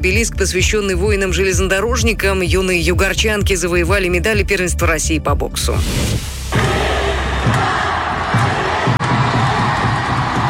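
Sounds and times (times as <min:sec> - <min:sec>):
speech: 0:00.0 - 0:06.7
crowd of hockey fans roaring and cheering a championship win: 0:06.4 - 0:10.4.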